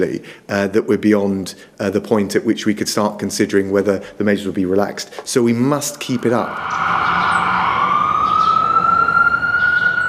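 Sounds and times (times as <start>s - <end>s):
speech: 0.0s - 7.3s
broadband road noise: 5.1s - 10.0s
emergency vehicle siren wailing in the United States: 5.7s - 10.0s.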